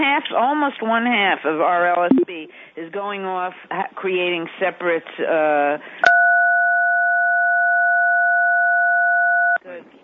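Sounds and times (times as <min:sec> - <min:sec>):
speech: 0:00.2 - 0:06.1
two-pitch telephone tone from someone tampering with the phone line: 0:06.1 - 0:09.6.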